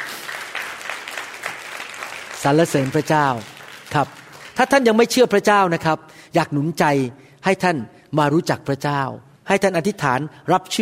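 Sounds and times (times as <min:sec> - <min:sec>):
audience applause, clapping hands: 0:00.0 - 0:04.9
speech: 0:02.4 - 0:10.7.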